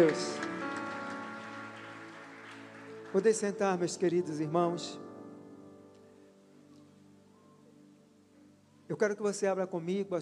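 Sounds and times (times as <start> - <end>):
speech: 0.0 - 0.4, 3.1 - 5.1, 8.9 - 10.2
audience applauding: 0.0 - 4.4.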